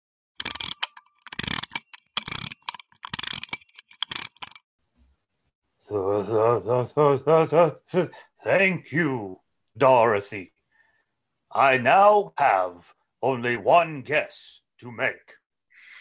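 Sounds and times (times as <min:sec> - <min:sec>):
ratcheting clicks winding up clockwork machine man Tik-Tok: 0:00.4 - 0:04.6
speech: 0:05.9 - 0:10.5, 0:11.6 - 0:15.4.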